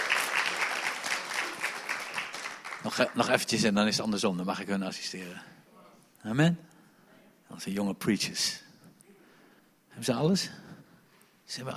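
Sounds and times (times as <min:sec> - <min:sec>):
applause from a small group: 0:00.0 - 0:03.5
speech: 0:02.8 - 0:05.6, 0:06.2 - 0:06.7, 0:07.5 - 0:08.6, 0:10.0 - 0:10.6, 0:11.5 - 0:11.7.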